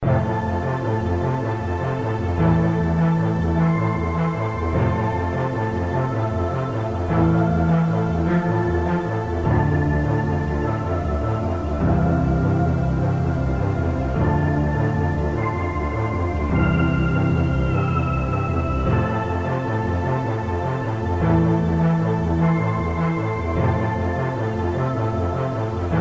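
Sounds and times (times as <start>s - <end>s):
synthesizer music: 0.0s - 25.9s.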